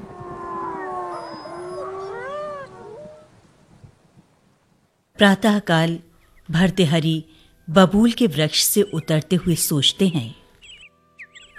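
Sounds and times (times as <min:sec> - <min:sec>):
wolves howling: 0:00.0 - 0:03.4
speech: 0:05.2 - 0:10.4.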